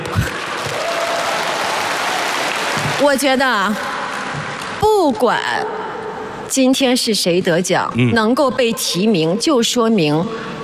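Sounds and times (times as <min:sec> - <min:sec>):
audience applause: 0:00.0 - 0:03.2
speech: 0:03.0 - 0:03.9, 0:04.8 - 0:05.8, 0:06.5 - 0:10.6.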